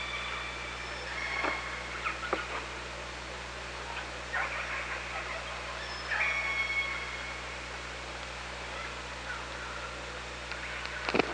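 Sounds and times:
Killer whale calls: 0.0s - 2.5s, 5.3s - 7.4s
low hum: 0.0s - 11.3s.

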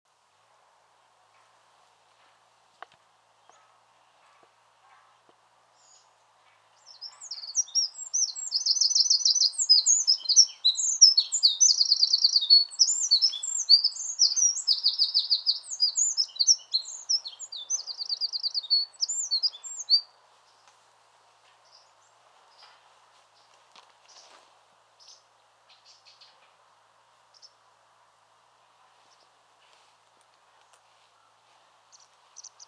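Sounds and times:
Eurasian wren singing: 6.8s - 20.1s, 31.9s - 32.6s.

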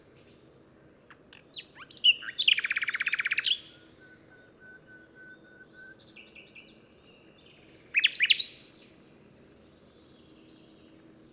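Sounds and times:
common nightingale song: 0.0s - 11.3s.

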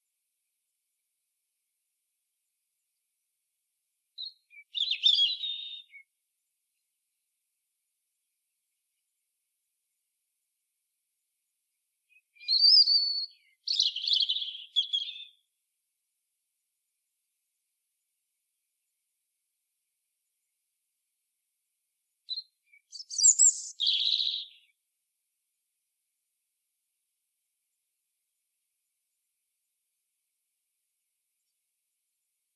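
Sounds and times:
European robin song: 3.9s - 6.9s, 11.5s - 15.6s, 22.1s - 24.8s.

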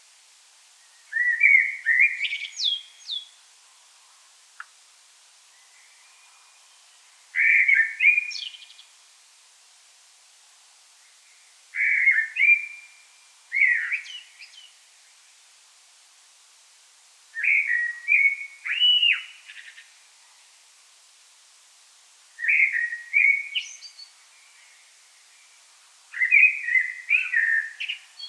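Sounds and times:
common blackbird singing: 0.8s - 3.4s, 5.4s - 9.0s, 11.0s - 15.2s, 17.4s - 20.4s, 22.4s - 28.2s
faint click: 4.6s - 4.8s.

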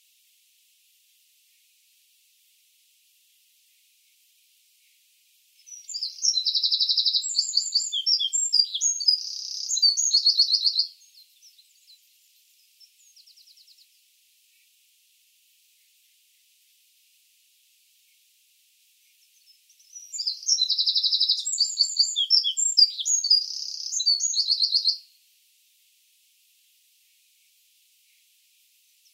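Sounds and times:
Eurasian wren singing with rattling trills: 5.6s - 14.0s, 19.2s - 25.0s.

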